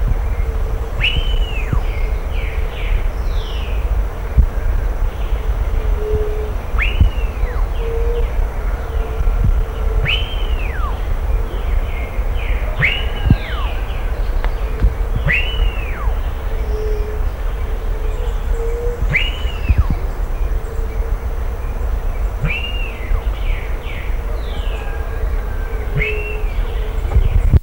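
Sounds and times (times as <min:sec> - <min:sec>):
continuous low rumble: 0:00.0 - 0:27.6
faint humming tone: 0:00.0 - 0:27.6
bird arched whistle: 0:01.0 - 0:01.8, 0:06.8 - 0:08.2, 0:10.0 - 0:11.0, 0:12.7 - 0:17.1, 0:19.1 - 0:20.0, 0:22.4 - 0:23.0.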